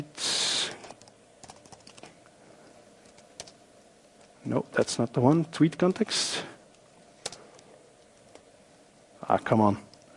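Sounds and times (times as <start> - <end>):
soft clicking of a computer keyboard as code is typed: 0.8 - 2.1, 3.0 - 3.6, 6.7 - 8.5
speech: 4.4 - 6.5, 9.3 - 9.9.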